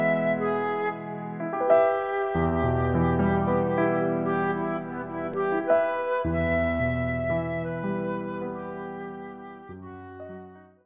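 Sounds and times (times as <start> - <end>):
piano playing second flute part: 0.0 - 10.8.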